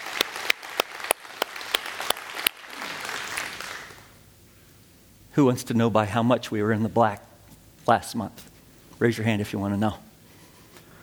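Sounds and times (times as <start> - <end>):
audience hand clapping: 0.0 - 4.1
speech: 5.4 - 7.3, 7.9 - 10.0.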